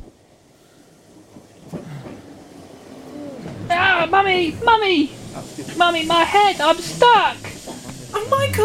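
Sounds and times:
low underground train rumble: 0:00.2 - 0:08.6
faint clunks: 0:01.3 - 0:02.3
speech: 0:04.3 - 0:07.5, 0:08.1 - 0:08.6.

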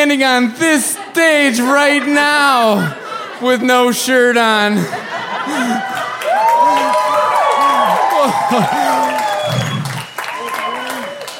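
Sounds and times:
speech: 0:00.0 - 0:05.9, 0:08.2 - 0:08.9
laughter: 0:00.6 - 0:11.2
large crowd applauding: 0:05.4 - 0:11.3.

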